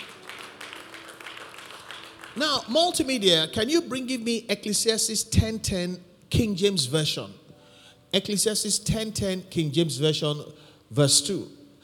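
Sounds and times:
audience clapping: 0.0 - 3.4
speech: 2.4 - 7.4, 8.1 - 11.6.

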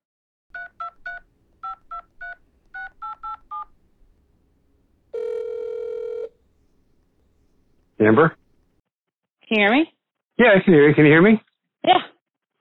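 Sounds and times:
touch-tone beeps of a phone number being dialed: 0.5 - 3.8, 5.1 - 6.4
loud sustained phone ringing tone: 0.5 - 4.2, 5.1 - 7.0
speech: 8.0 - 8.4, 9.5 - 12.1.

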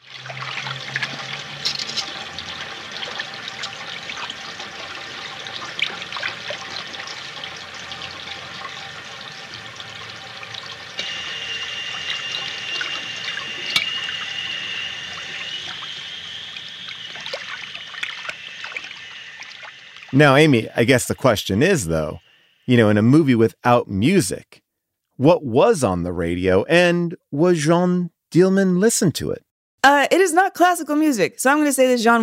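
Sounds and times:
running water splashing into a sink: 0.0 - 22.1
dishes clinking and clattering: 1.6 - 2.2
speech: 20.2 - 24.6, 25.2 - 32.2.

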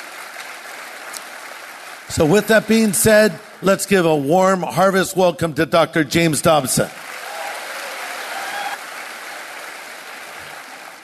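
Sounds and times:
crowd applause: 0.0 - 4.3, 6.8 - 11.0
speech: 2.1 - 7.0.

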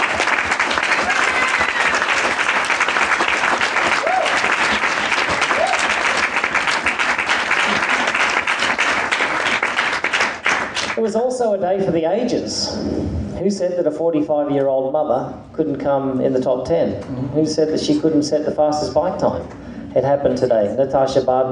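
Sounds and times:
audience clapping hands: 0.0 - 11.1
speech: 11.1 - 21.5.

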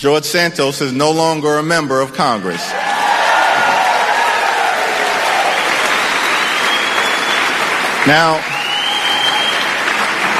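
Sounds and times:
speech: 0.0 - 3.0, 8.0 - 8.5
audience applause: 2.7 - 10.3.

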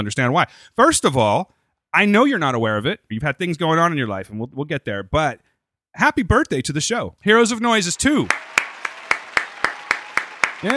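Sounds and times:
speech: 0.0 - 8.7
clapping: 7.8 - 10.7.

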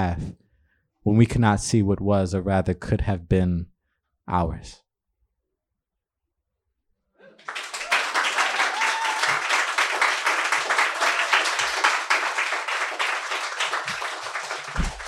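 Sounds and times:
speech: 0.0 - 0.4, 1.0 - 3.7, 4.3 - 4.8
crowd applauding: 7.2 - 15.0.

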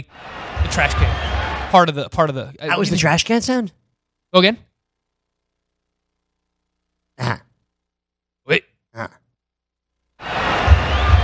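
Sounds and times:
crowd noise from game audio: 0.0 - 1.8, 10.2 - 11.2
speech: 0.7 - 4.7.

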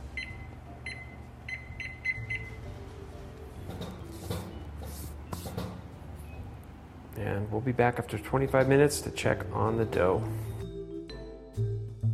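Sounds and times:
kitchen timer being set, beeping: 0.2 - 2.6
low clatter and rustling in a room: 3.5 - 6.3
speech: 7.2 - 10.6.

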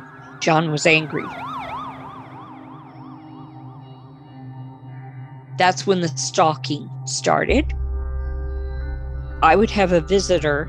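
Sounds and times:
fire truck siren warbling: 0.3 - 3.8
speech: 0.4 - 1.5, 5.6 - 7.8, 9.4 - 10.6
low rumble of engine or traffic noise: 7.5 - 10.6.

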